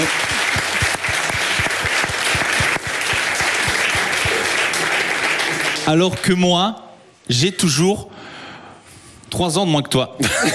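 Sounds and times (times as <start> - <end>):
audience applause: 0.0 - 6.4
speech: 5.9 - 8.3, 9.3 - 10.5.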